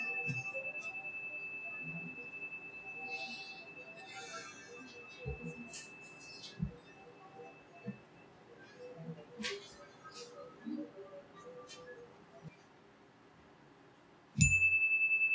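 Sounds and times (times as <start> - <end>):
meditation chime ringing: 0.0 - 8.0, 14.4 - 15.3.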